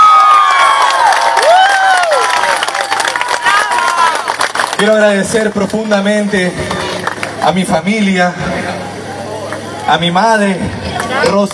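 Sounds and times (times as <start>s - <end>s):
crowd applause: 0.0s - 7.6s
speech: 4.8s - 6.8s, 7.4s - 8.5s, 9.9s - 11.5s.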